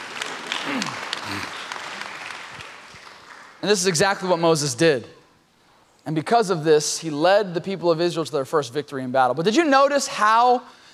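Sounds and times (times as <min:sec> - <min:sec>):
audience applause: 0:00.0 - 0:03.6
speech: 0:03.6 - 0:05.2, 0:06.1 - 0:10.8.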